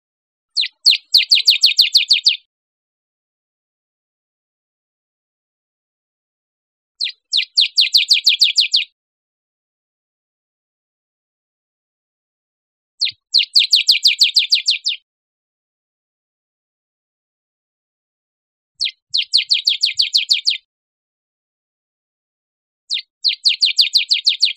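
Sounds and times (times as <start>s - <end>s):
bird giving high down-slurred chirps: 0.5s - 2.5s, 7.0s - 9.0s, 13.0s - 15.0s, 18.8s - 20.7s, 22.9s - 24.5s.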